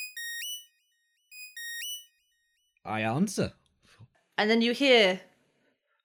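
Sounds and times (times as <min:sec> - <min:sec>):
communicator ringing: 0:00.0 - 0:00.6, 0:01.3 - 0:02.1
speech: 0:02.8 - 0:03.6, 0:04.4 - 0:05.3.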